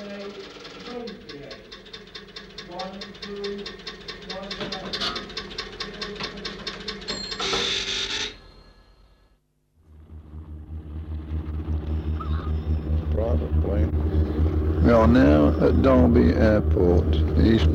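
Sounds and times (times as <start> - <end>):
speech: 2.8 - 3.8, 15.1 - 17.7
airplane engine being run up: 9.9 - 17.7.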